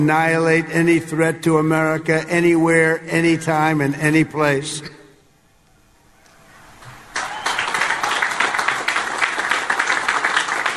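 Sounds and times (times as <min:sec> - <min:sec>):
speech: 0:00.0 - 0:05.0
low energy clapping from cadets: 0:07.1 - 0:10.7.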